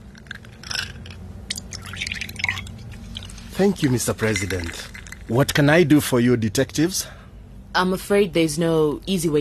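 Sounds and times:
steady low hum: 0:00.0 - 0:09.3
whiskey poured into a glass: 0:00.1 - 0:05.3
speech: 0:03.6 - 0:09.3.

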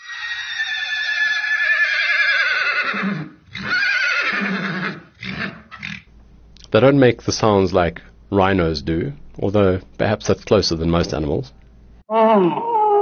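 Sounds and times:
horse whinnying: 0:00.0 - 0:06.1
speech: 0:06.7 - 0:12.7.

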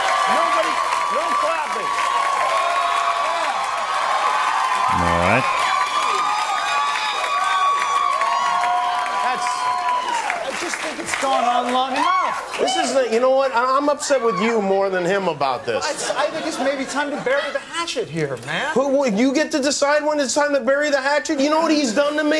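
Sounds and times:
audience applause and cheering: 0:00.0 - 0:14.8
laughter: 0:10.1 - 0:11.5, 0:15.6 - 0:17.9
speech: 0:12.6 - 0:22.3.

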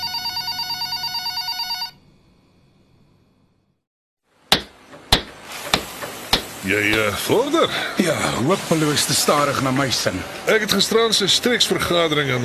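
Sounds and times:
telephone bell ringing: 0:00.0 - 0:02.0
sharp clacks and knocks: 0:04.5 - 0:07.0
speech: 0:06.7 - 0:12.4.

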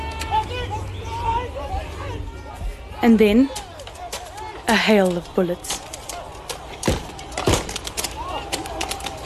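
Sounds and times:
distant chanting: 0:00.0 - 0:09.2
murmuring crowd: 0:00.0 - 0:09.2
people yelling instructions: 0:00.0 - 0:09.2
speech: 0:03.0 - 0:03.6, 0:04.7 - 0:05.9.

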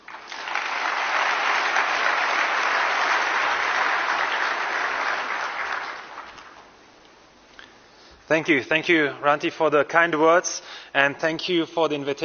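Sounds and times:
crowd applauding: 0:00.0 - 0:06.7
speech: 0:08.3 - 0:12.2.

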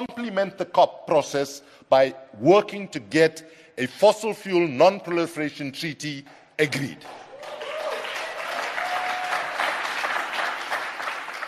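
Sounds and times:
speech: 0:00.0 - 0:07.6
audience clapping: 0:06.2 - 0:11.4.

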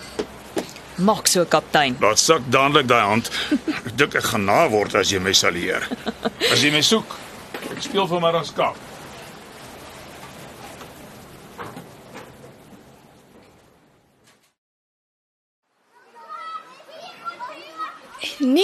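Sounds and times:
speech: 0:01.0 - 0:08.9
laughter: 0:03.3 - 0:04.1, 0:05.5 - 0:06.9
children playing in a schoolyard at break: 0:15.8 - 0:18.6.

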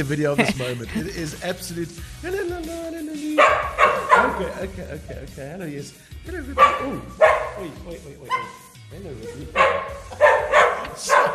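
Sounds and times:
laughter: 0:00.0 - 0:08.0, 0:09.1 - 0:11.3
speech: 0:00.0 - 0:11.3
dogs barking excitedly on noticing their owner has arrived: 0:03.3 - 0:04.8, 0:06.4 - 0:11.3.

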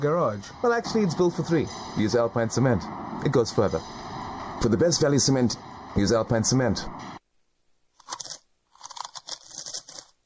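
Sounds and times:
speech: 0:00.0 - 0:07.2
crunching potato chips: 0:08.0 - 0:10.2.

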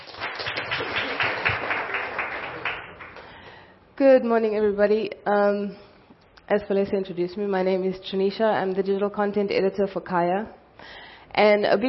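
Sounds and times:
audience applause: 0:00.0 - 0:03.3
speech: 0:04.0 - 0:05.8, 0:06.5 - 0:11.8.

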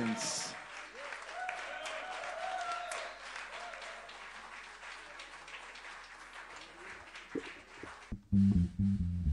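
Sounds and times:
crowd applauding: 0:00.0 - 0:08.2
speech: 0:08.4 - 0:09.2.

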